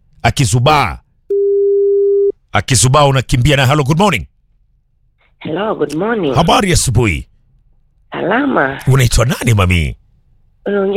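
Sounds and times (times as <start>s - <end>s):
speech: 0.2s - 1.0s, 2.5s - 4.3s, 5.4s - 7.3s, 8.1s - 10.0s, 10.6s - 10.9s
telephone ringback tone: 1.3s - 2.3s.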